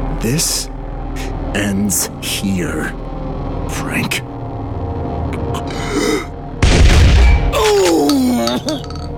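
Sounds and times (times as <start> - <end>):
speech: 0.2 - 3.0, 3.7 - 4.3, 8.6 - 8.9
gunshot in a radio drama: 6.6 - 7.5
man crying out: 7.6 - 8.9.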